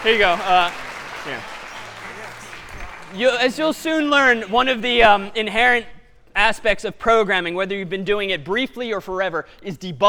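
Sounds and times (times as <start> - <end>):
speech: 0.0 - 1.6, 3.1 - 10.0
audience applause in a programming lecture hall: 0.0 - 4.5.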